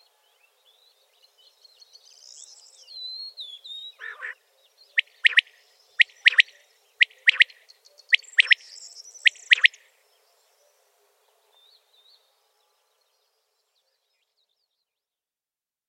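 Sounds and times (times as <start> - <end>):
common quail calling: 4.0 - 4.4, 5.0 - 7.5, 8.1 - 8.6, 9.3 - 9.7.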